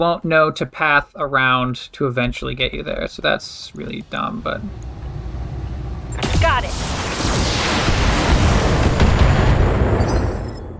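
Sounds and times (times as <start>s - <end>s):
speech: 0.0s - 4.9s, 6.4s - 7.4s
big explosion in a video game: 4.6s - 10.7s.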